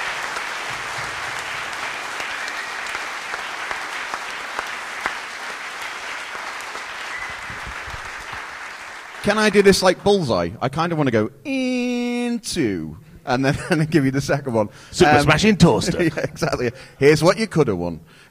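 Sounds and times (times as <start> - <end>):
audience applause: 0.0 - 10.0
speech: 9.2 - 11.7, 12.5 - 18.3.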